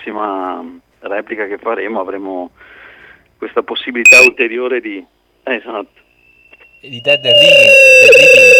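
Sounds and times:
speech: 0.0s - 2.8s, 3.4s - 6.0s, 6.8s - 8.5s
telephone line ringing or connecting: 4.1s - 4.4s.

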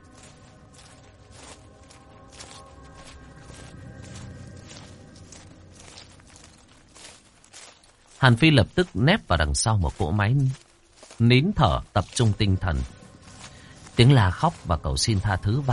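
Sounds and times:
footsteps approaching from behind: 0.0s - 15.7s
speech: 8.2s - 10.6s, 11.2s - 13.0s, 14.0s - 15.7s.

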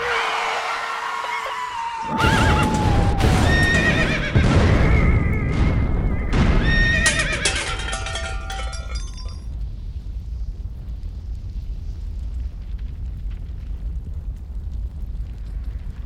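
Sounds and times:
horses whinnying: 0.1s - 9.2s
galloping hooves rumbling: 2.1s - 16.0s.

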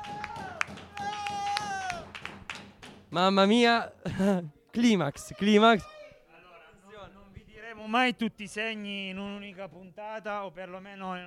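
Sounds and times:
applause: 0.0s - 3.1s
speech: 3.1s - 6.0s, 7.9s - 11.2s.

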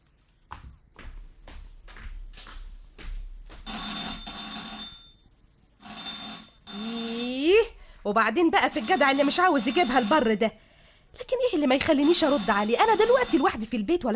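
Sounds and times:
telephone bell ringing: 3.7s - 7.8s, 8.6s - 10.5s, 12.0s - 13.7s
speech: 8.1s - 10.6s, 11.2s - 14.1s.

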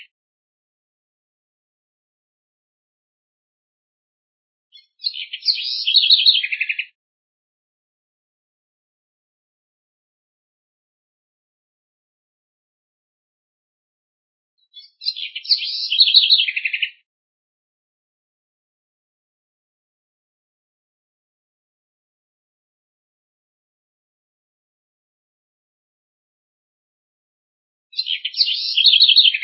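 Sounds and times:
house wren singing: 4.7s - 7.0s, 14.6s - 17.0s, 28.0s - 29.4s.

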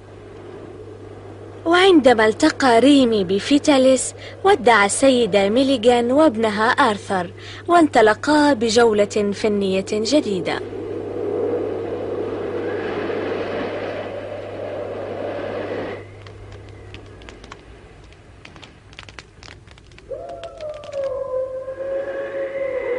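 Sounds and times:
speech: 1.6s - 10.8s
rumbling noise: 10.6s - 21.8s
scattered clicks: 16.0s - 21.2s
wolves howling: 20.1s - 22.9s.

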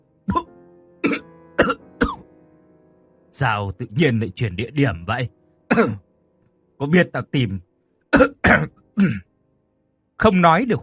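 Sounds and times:
man coughing heavily: 0.3s - 2.2s, 5.7s - 6.0s, 8.2s - 9.3s
speech: 3.4s - 6.1s, 6.8s - 9.3s, 10.2s - 10.8s.

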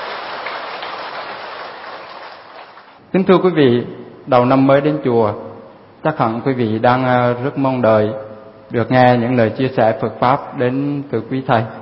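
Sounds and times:
large audience applause: 0.0s - 3.0s
speech: 3.1s - 11.8s.

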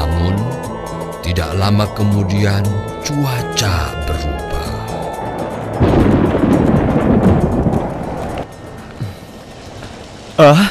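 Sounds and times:
speech: 1.4s - 4.5s
heavy rain: 4.0s - 10.7s.

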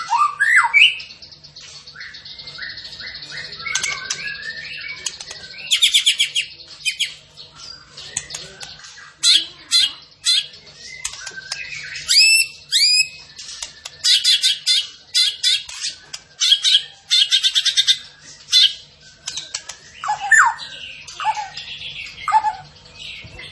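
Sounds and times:
songbird whistles and chatter: 0.0s - 23.5s.

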